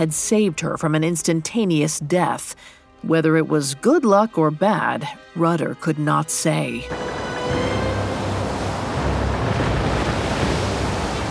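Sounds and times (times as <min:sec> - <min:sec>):
speech: 0:00.0 - 0:07.8
surf at sea: 0:06.8 - 0:11.3
strong wind at sea: 0:06.9 - 0:11.3.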